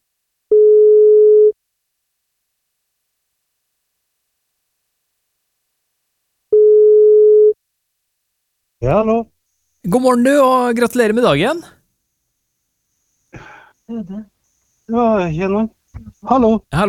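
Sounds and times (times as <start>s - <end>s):
telephone busy signal: 0.5s - 1.6s, 6.6s - 7.6s
speech: 8.8s - 11.8s, 13.4s - 14.3s, 14.9s - 16.8s.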